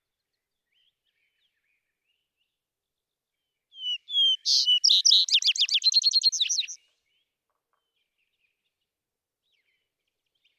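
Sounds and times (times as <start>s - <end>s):
vesper sparrow song: 3.8s - 6.8s
speech: 4.5s - 4.7s.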